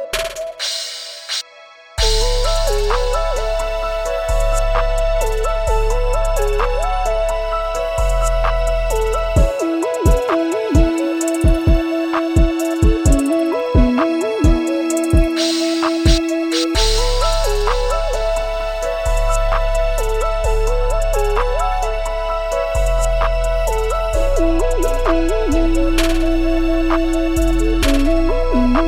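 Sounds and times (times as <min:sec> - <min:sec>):
plugg beat loop: 0:00.1 - 0:01.4, 0:02.0 - 0:28.8.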